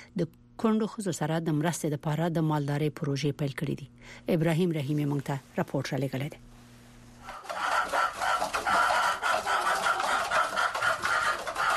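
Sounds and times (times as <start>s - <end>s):
speech: 0.2s - 6.5s
about a hundred chickens clucking inside an old mud house in Gurbuz district: 7.2s - 11.7s.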